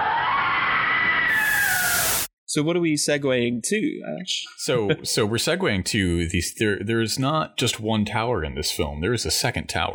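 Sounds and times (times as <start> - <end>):
scream sound effect: 0.0 - 2.3
speech: 2.5 - 9.9.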